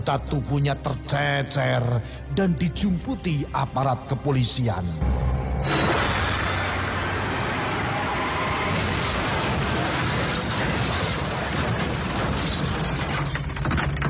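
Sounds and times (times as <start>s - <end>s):
speech: 0.0s - 5.9s
bus crashing into bridge wall: 5.7s - 14.0s.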